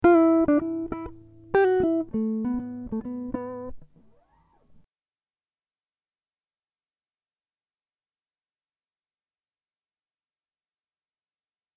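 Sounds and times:
guitar riffs in E minor at 100 BPM: 0.0 - 4.8.

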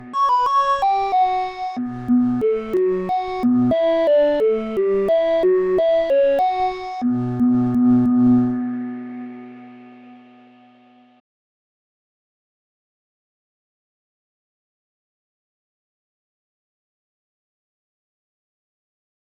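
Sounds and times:
synthesizer: 0.0 - 11.2.

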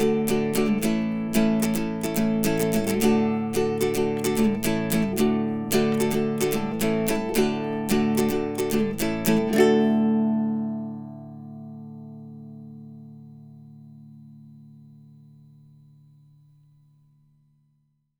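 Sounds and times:
guitalele playing: 0.0 - 13.0.

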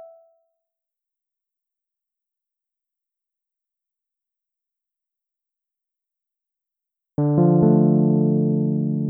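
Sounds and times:
instrumental music: 7.2 - 9.0.

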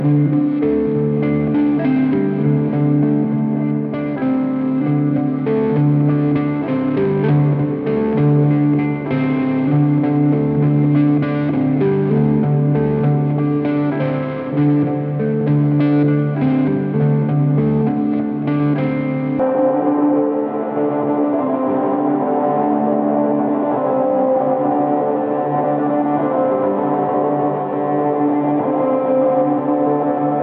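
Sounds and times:
guitar loop: 0.0 - 30.4.

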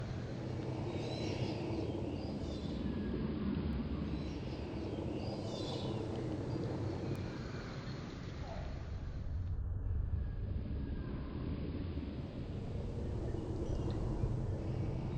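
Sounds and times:
ambient plane noise: 0.0 - 15.1.

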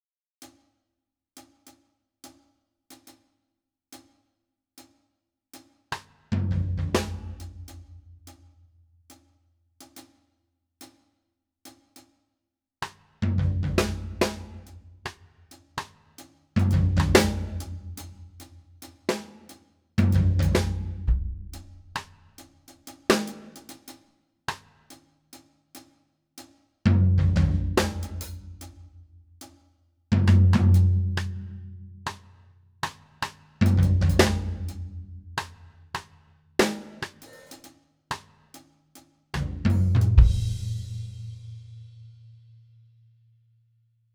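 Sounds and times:
drum: 6.0 - 8.4, 12.8 - 15.2, 16.6 - 23.8, 26.9 - 28.9, 30.1 - 38.2, 39.4 - 41.8.

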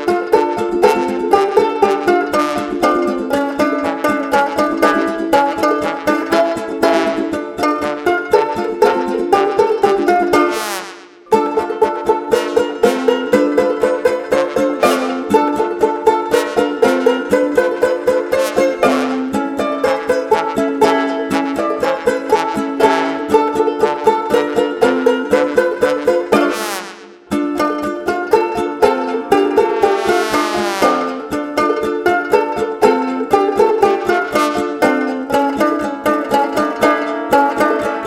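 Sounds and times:
ukulele: 0.0 - 38.0
trombone: 0.8 - 15.4, 16.3 - 27.3, 29.5 - 31.4, 34.1 - 35.0, 37.8 - 38.0.

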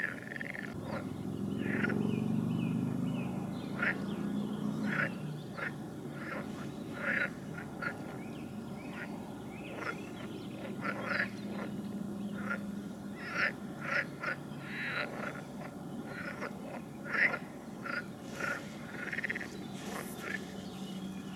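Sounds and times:
frog chorus of rasping calls: 0.0 - 21.3.

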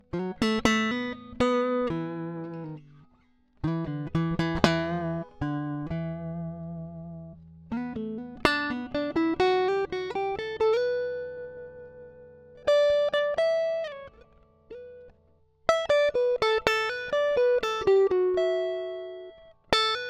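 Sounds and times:
dry guitar improvisation: 0.0 - 20.0.

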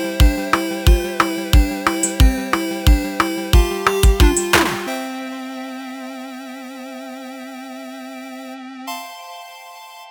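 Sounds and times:
8-bit march music: 0.0 - 5.2.

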